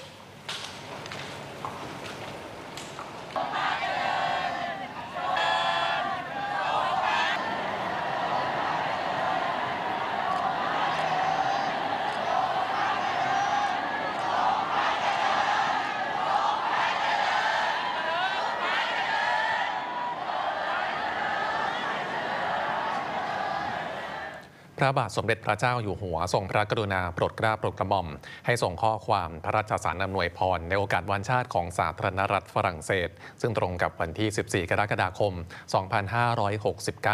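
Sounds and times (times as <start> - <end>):
residents along a royal route cheering: 3.0 - 24.5
speech: 24.8 - 37.1.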